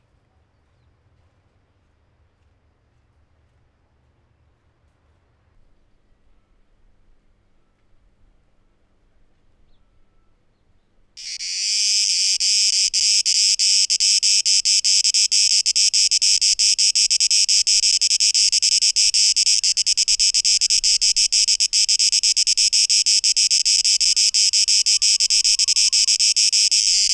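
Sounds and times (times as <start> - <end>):
cicada buzzing: 11.2 - 27.1.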